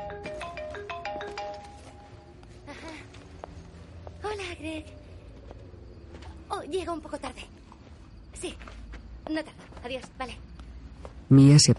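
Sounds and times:
telephone ringtone: 0.0 - 2.3
speech: 4.3 - 5.0, 6.5 - 7.6, 8.4 - 10.4, 11.3 - 11.7.

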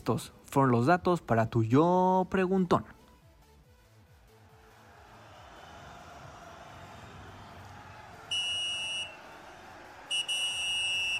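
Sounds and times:
speech: 0.0 - 3.0
referee's whistle blow: 8.3 - 9.3, 10.0 - 11.1.

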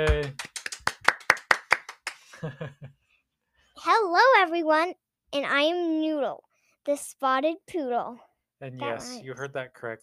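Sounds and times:
clapping: 0.0 - 2.5
speech: 2.4 - 3.0, 3.8 - 10.0.

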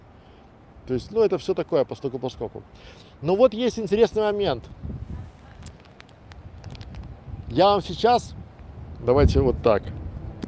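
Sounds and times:
speech: 0.9 - 5.0, 7.5 - 8.4, 9.0 - 10.0
wind buffeting the microphone: 3.7 - 10.4
faint clicks and rustles: 4.6 - 7.6.

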